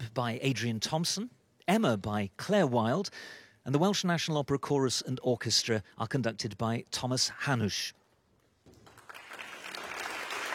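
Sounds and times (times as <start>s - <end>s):
speech: 0.2s - 8.0s
opera audience applause for the conductor at an opera performance: 8.8s - 10.5s.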